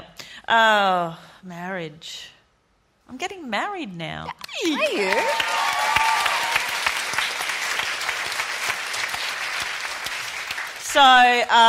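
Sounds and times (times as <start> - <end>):
speech: 0.5 - 2.4, 3.1 - 5.6, 10.9 - 11.6
audience clapping: 4.7 - 11.6.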